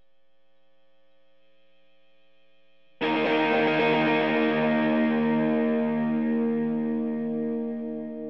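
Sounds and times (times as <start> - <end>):
guitar: 3.0 - 8.2.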